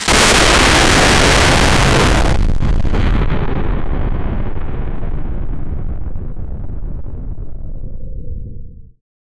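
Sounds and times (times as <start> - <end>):
loud crash: 0.0 - 6.0.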